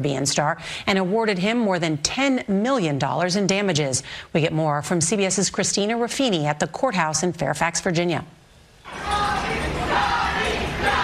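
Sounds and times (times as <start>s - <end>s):
speech: 0.0s - 9.2s
crowd cheering outside a courthouse: 8.9s - 11.0s.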